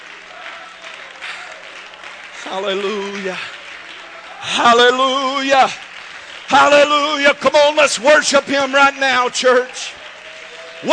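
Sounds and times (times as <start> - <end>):
audience clapping hands in praise: 0.0 - 10.9
speech: 2.4 - 3.6, 4.4 - 5.9, 6.5 - 10.0, 10.8 - 10.9.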